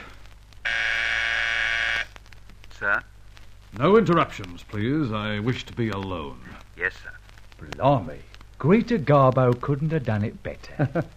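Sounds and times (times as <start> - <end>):
intercom phone buzzing: 0.6 - 2.2
speech: 2.8 - 3.1, 3.7 - 11.1.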